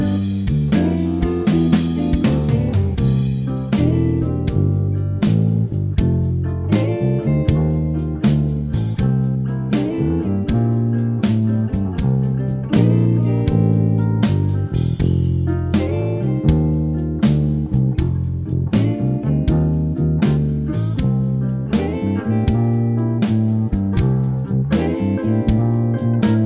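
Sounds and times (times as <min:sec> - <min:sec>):
slow blues music: 0:00.0 - 0:26.4.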